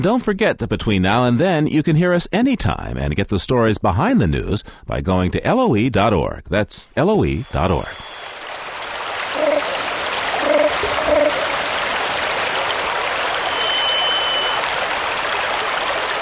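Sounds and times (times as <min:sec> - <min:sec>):
speech: 0:00.0 - 0:08.3
stream flowing through the Carmanah Valley in British Columbia: 0:07.6 - 0:16.2.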